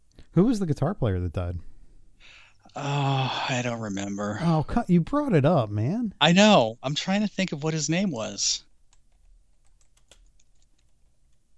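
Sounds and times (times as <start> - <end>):
speech: 0.4 - 1.7, 2.7 - 8.7
typing a search on a computer keyboard: 8.9 - 11.4.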